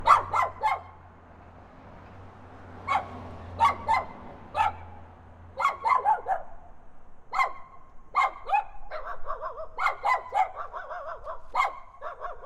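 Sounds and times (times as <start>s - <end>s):
small dog barking in a backyard: 0.0s - 1.0s, 2.8s - 4.9s, 5.6s - 6.7s, 7.3s - 12.4s.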